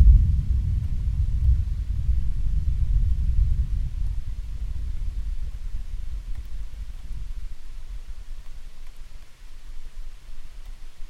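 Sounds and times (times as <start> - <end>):
thunderstorm: 0.0 - 8.1.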